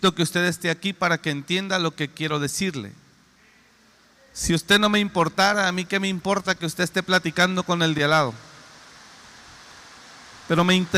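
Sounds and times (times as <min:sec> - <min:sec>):
speech: 0:00.0 - 0:03.0, 0:04.4 - 0:08.5, 0:10.5 - 0:10.9
rain falling: 0:08.6 - 0:10.9.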